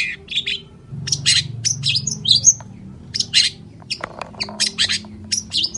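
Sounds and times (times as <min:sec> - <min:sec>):
long-tailed shrike song: 0:00.2 - 0:04.0
soft low drone: 0:00.7 - 0:05.6.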